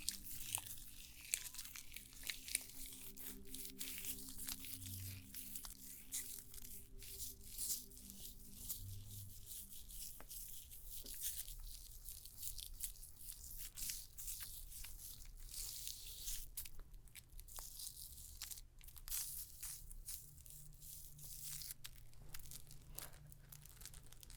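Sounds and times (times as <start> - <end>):
faint tonal drone: 0.0 - 10.2
brushing strokes: 0.0 - 11.8
rustling and crinkling of stone spa treatment: 0.0 - 24.3.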